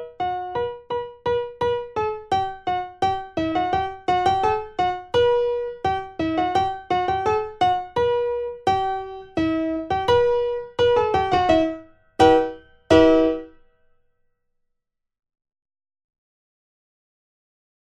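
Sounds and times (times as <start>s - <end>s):
primo part of four-hand practice piece playback: 0.0s - 13.6s.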